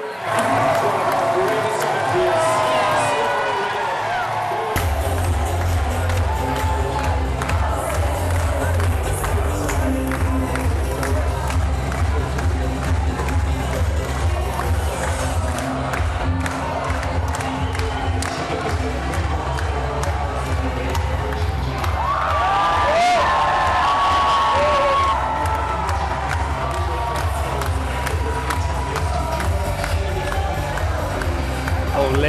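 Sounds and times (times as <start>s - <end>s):
crowd clapping in a hall: 0.0s - 32.2s.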